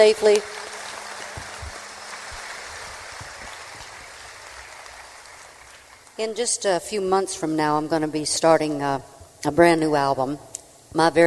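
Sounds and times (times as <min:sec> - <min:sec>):
speech: 0:00.0 - 0:00.6, 0:06.2 - 0:11.2
crowd applause: 0:00.0 - 0:06.2.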